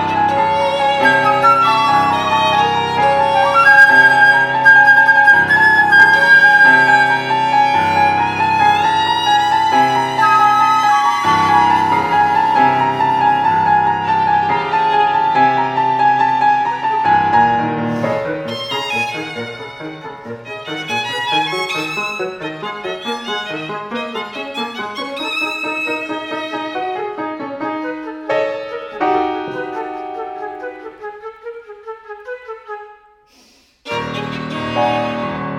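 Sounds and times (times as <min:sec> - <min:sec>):
flute: 0:00.0 - 0:19.6, 0:27.6 - 0:33.3
violin: 0:00.0 - 0:32.8, 0:33.8 - 0:35.5
piano: 0:00.0 - 0:33.2, 0:33.8 - 0:35.5.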